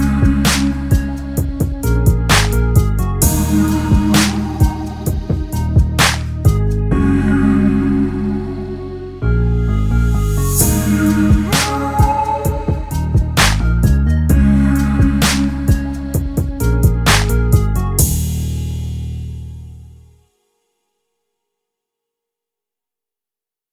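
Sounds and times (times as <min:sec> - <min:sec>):
electronic body music: 0:00.0 - 0:08.0, 0:09.2 - 0:19.2.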